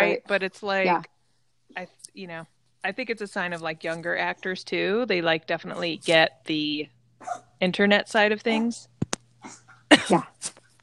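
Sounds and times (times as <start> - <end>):
speech: 0.0 - 10.6
chihuahua coughing up a hairball: 9.4 - 10.7.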